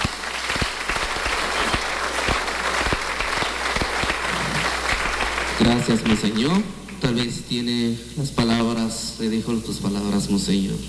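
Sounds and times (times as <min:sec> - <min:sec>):
audience applause: 0:00.0 - 0:07.4
speech: 0:05.6 - 0:10.8.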